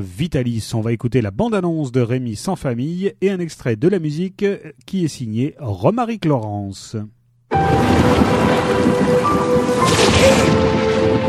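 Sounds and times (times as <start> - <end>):
speech: 0.0 - 11.2
deep thunder rumbling: 7.5 - 11.2
heavy rain pouring in a thunderstorm: 7.5 - 11.2.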